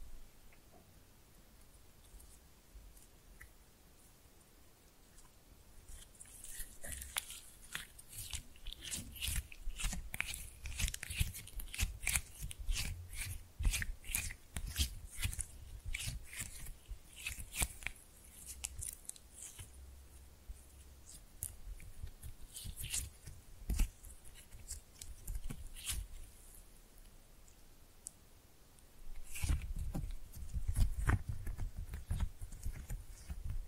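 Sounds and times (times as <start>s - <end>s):
slime pressed and mixed squishing: 5.1s - 26.5s, 29.1s - 33.6s.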